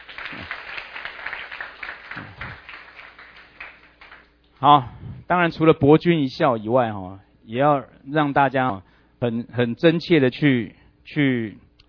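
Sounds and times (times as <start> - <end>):
audience clapping: 0.0 - 4.4
speech: 4.6 - 11.6.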